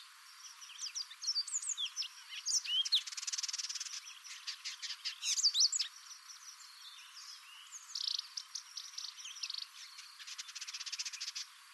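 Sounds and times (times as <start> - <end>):
Vidua purpurascens indigobird song: 0.0 - 11.7.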